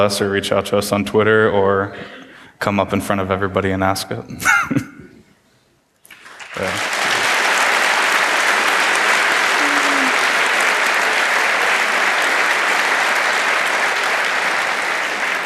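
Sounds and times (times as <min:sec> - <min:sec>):
speech: 0:00.0 - 0:04.9
audience applause: 0:06.1 - 0:15.4.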